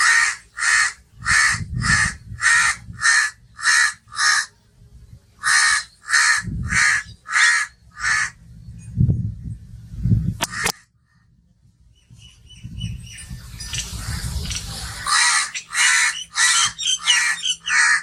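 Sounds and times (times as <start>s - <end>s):
crow cawing: 0.0s - 4.5s, 5.4s - 8.4s, 10.4s - 10.8s, 14.8s - 18.0s
calm bird ambience: 0.0s - 9.8s, 10.4s - 18.0s.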